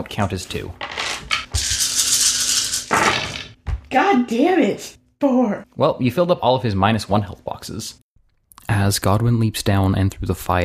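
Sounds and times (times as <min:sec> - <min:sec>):
speech: 0:00.0 - 0:00.8, 0:03.9 - 0:08.0, 0:08.7 - 0:10.6
rolling dice: 0:00.8 - 0:03.6.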